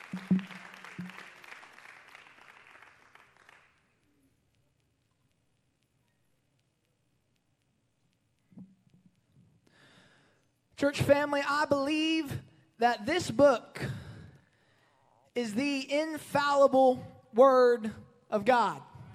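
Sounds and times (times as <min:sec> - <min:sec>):
audience clapping hands: 0:00.0 - 0:04.2
speech: 0:10.8 - 0:14.0, 0:15.4 - 0:18.9.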